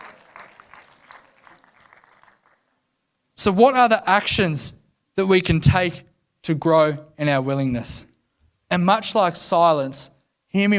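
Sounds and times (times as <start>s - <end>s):
crowd applauding: 0.0s - 2.8s
speech: 3.4s - 8.1s, 8.7s - 10.7s.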